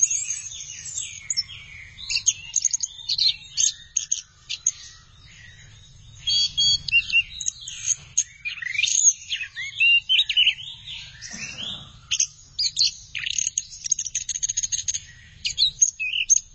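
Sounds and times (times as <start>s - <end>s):
thrush singing: 0.0s - 16.5s.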